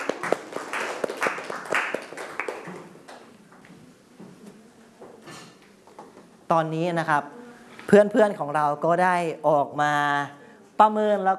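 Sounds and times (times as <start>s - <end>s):
classroom clapping: 0.0s - 3.3s
speech: 6.5s - 11.3s.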